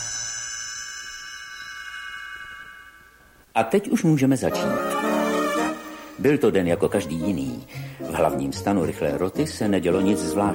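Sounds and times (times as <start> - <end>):
small bell ringing: 0.0 - 3.4
speech: 3.6 - 4.9, 6.2 - 10.5.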